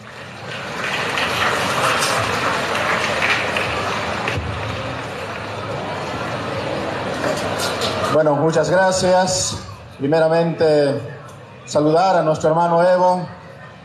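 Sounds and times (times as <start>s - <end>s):
strong applause welcoming a speaker: 0.0s - 8.1s
speech: 8.2s - 13.4s.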